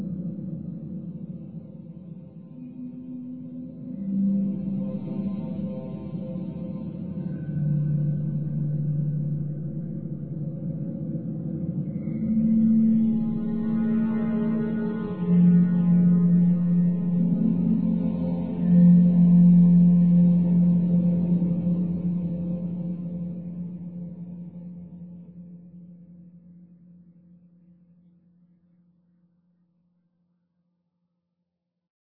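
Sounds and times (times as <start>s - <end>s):
drone: 3.5s - 25.2s.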